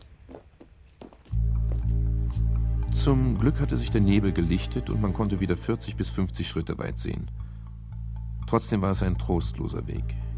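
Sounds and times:
footsteps walking: 0.0s - 2.1s
speech: 3.0s - 7.4s, 8.5s - 10.2s.

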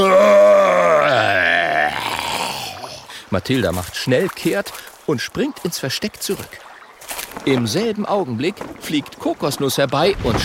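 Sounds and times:
Tyrannosaurus roaring: 0.0s - 2.9s
speech: 3.3s - 10.4s.

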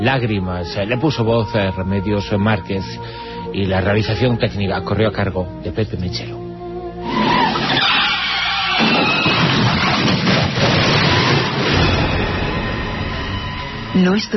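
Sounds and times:
speech: 0.0s - 7.2s, 14.0s - 14.3s
car skidding and crashing head-on: 7.0s - 13.3s.

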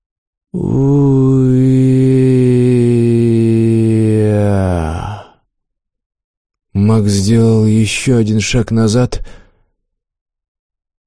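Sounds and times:
speech: 0.5s - 1.0s, 7.0s - 9.4s
mournful moan: 0.6s - 5.4s.

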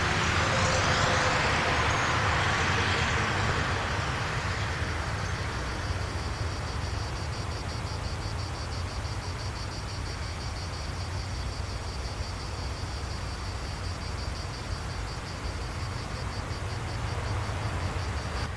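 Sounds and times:
cars passing by on a street: 0.0s - 18.5s.

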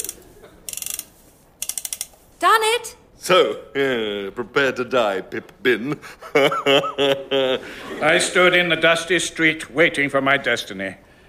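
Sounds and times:
clock being wound forward: 0.0s - 2.2s
speech: 2.4s - 11.0s
laughter: 5.8s - 8.6s.

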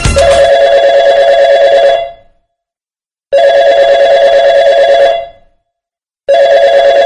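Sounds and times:
telephone ringing: 0.2s - 2.4s, 3.3s - 5.5s, 6.3s - 7.0s.

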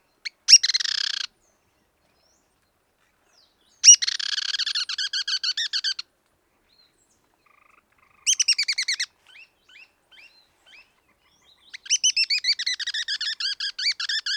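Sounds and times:
Black-crested Tit-Tyrant Anairetes nigrocristatus trilling and ticking: 0.5s - 1.3s, 3.9s - 6.1s, 7.5s - 10.3s, 11.6s - 14.3s.

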